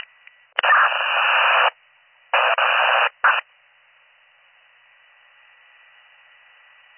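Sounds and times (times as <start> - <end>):
two-way radio click: 0.0 - 1.7, 2.4 - 3.4
two-way radio static bursts: 0.6 - 1.8, 2.4 - 3.4.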